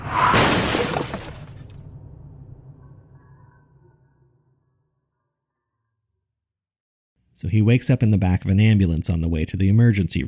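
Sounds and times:
car collision: 0.0s - 2.0s
glass shattering: 0.3s - 1.8s
speech: 7.4s - 10.2s.

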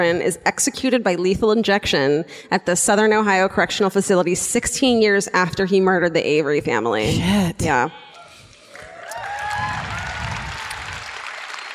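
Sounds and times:
speech: 0.0s - 8.0s
light scattered clapping from a small group: 8.5s - 11.7s.

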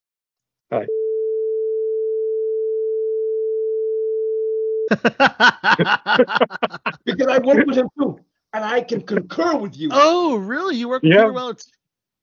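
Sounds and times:
speech: 0.7s - 1.0s, 4.9s - 11.8s
censor bleep tone: 0.8s - 4.9s
laughter: 4.9s - 10.1s.

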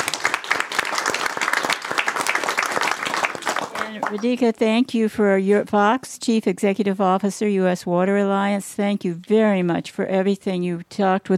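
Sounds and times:
audience applause: 0.0s - 4.4s
speech: 4.0s - 11.3s.

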